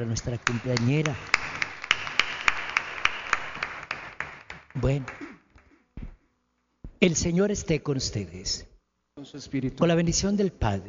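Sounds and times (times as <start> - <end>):
speech: 0.0 - 1.6, 4.8 - 5.2, 7.0 - 10.8
audience applause: 0.0 - 5.4.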